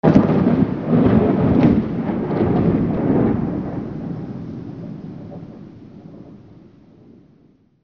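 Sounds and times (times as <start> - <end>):
rain: 0.0 - 7.8.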